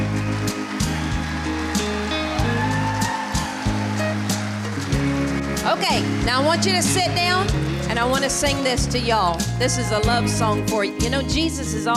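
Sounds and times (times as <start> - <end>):
crowd clapping: 0.0 - 9.5
speech: 5.7 - 11.9.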